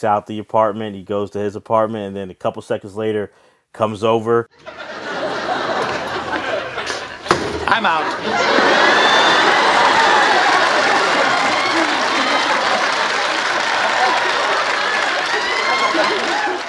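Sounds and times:
speech: 0.0s - 5.3s, 7.8s - 9.1s
studio audience laughing: 4.6s - 16.6s
whoops and chatter: 8.2s - 16.6s.

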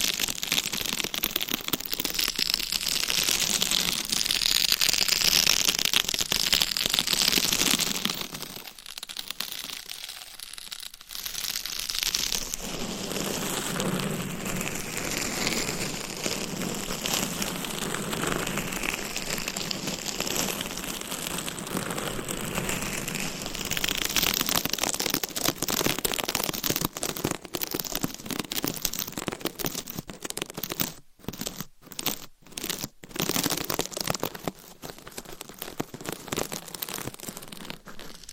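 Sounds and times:
scratching and rubbing on a homemade microphone cover: 0.1s - 38.3s.

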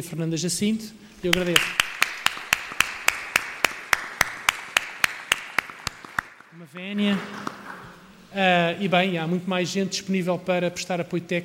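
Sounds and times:
speech: 0.0s - 1.9s, 6.8s - 7.5s, 8.4s - 11.4s
audience applause: 1.2s - 6.5s.

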